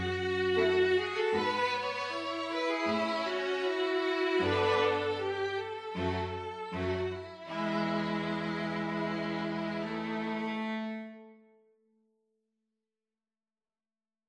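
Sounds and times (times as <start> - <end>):
string quintet playing: 0.0 - 11.4.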